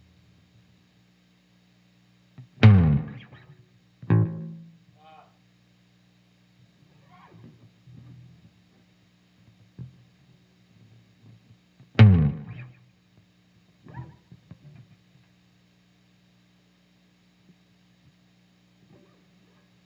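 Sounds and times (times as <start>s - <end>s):
bass slide: 2.6s - 3.4s, 12.0s - 12.7s.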